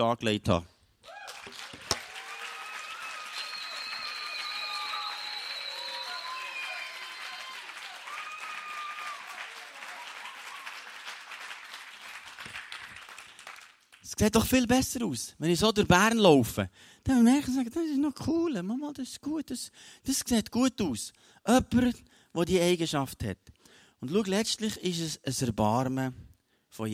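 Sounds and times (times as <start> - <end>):
speech: 0.0 - 0.7, 14.2 - 26.9
audience applause: 1.0 - 14.0.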